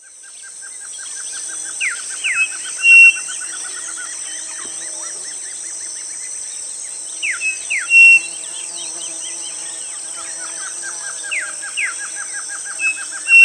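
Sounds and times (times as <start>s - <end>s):
constant high electronic-sounding hiss: 0.0s - 13.4s
bird whistles: 2.2s - 3.2s, 7.3s - 8.3s, 12.8s - 13.4s.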